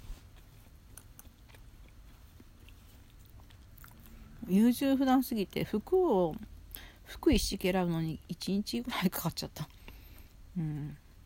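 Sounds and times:
soft wet chewing of tarako pasta with cod roe: 0.0 - 7.0, 9.6 - 10.3
speech: 4.5 - 6.5, 7.2 - 9.8, 10.6 - 11.0.

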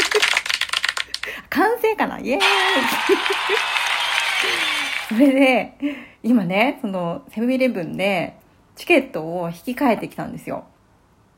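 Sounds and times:
applause sound effect: 0.0 - 1.2, 2.4 - 5.2
speech: 1.3 - 10.7
laughter: 2.4 - 5.2.

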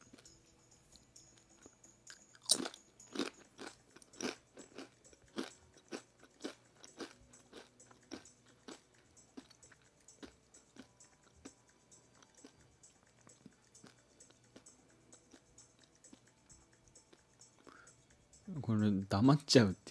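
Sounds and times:
crunching triangular corn chip snack: 1.6 - 8.8
speech: 18.6 - 19.8.

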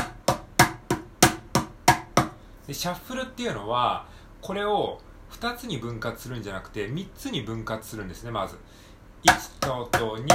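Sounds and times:
mini cajon being struck: 0.0 - 2.4, 9.3 - 10.3
speech: 2.7 - 10.3.

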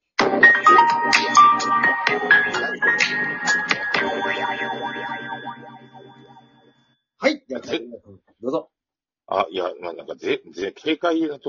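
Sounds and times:
music playing: 0.2 - 6.7
speech: 9.4 - 11.4.

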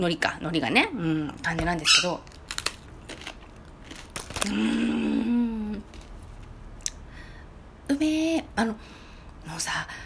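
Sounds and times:
speech: 0.0 - 2.4, 4.4 - 5.0, 7.9 - 10.0
crispy rice cracker being bitten and chewed: 2.2 - 4.8.

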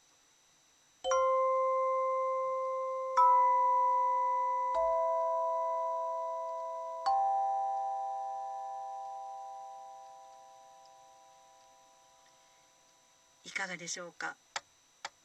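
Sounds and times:
tone chime ringing: 1.1 - 12.3
speech: 13.6 - 14.4.

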